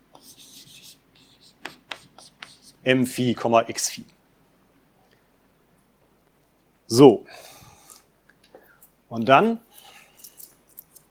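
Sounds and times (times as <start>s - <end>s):
handwriting scratching: 0.2s - 2.9s
speech: 2.8s - 4.2s, 6.9s - 7.5s, 9.1s - 9.7s.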